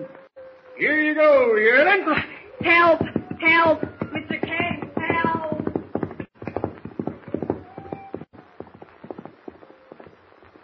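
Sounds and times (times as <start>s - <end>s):
speech: 0.8s - 4.4s
wild unbroken horse galloping: 2.5s - 10.6s.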